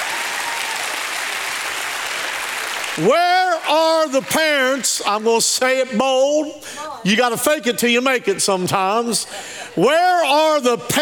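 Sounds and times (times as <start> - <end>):
audience applause: 0.0 - 5.1
speech: 3.0 - 11.0.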